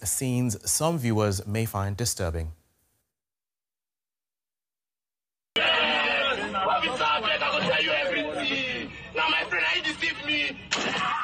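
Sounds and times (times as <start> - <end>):
speech: 0.0 - 2.6
laughter: 5.6 - 9.9
gunshots as a plain-clothes police officer fires at a young man in Delta State, Nigeria: 10.7 - 11.2.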